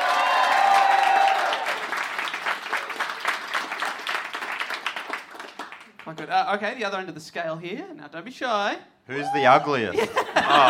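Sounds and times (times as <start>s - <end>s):
audience applause: 0.0s - 6.1s
speech: 6.1s - 10.6s
laughter: 9.8s - 10.6s.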